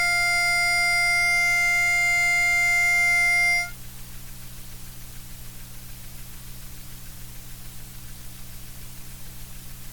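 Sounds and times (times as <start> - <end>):
baritone solo: 0.0 - 3.8.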